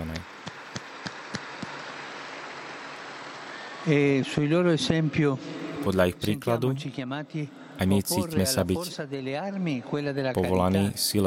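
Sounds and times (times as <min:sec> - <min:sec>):
audience applause: 0:00.0 - 0:05.1
louder single claps: 0:00.1 - 0:01.9
speech: 0:03.8 - 0:11.2.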